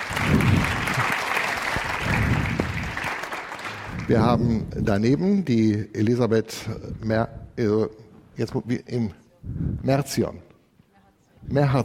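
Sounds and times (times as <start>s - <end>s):
audience applause: 0.0s - 4.2s
speech: 4.1s - 10.5s, 11.4s - 11.8s.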